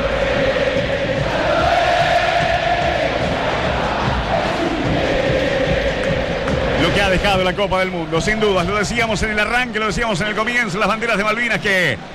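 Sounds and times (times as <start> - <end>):
River Plate fans roaring at the Monumental stadium: 0.0 - 7.6
speech: 7.1 - 12.1.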